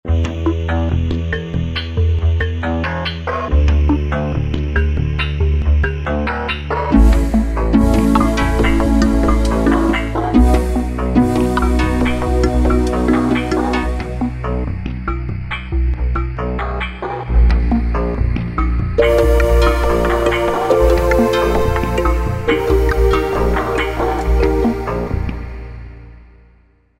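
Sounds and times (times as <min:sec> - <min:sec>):
Korg Wavestation A/D synthesizer: 0:00.0 - 0:26.7.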